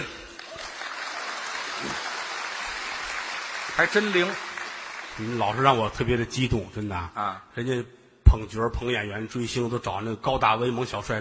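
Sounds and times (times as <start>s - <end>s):
audience applause at a stage performance: 0.0s - 5.9s
speech: 3.8s - 4.5s, 5.2s - 11.1s.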